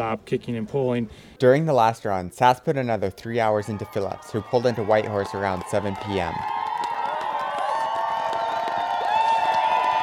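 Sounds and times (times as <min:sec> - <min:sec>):
speech: 0:00.0 - 0:06.7
crowd cheering: 0:03.4 - 0:10.0.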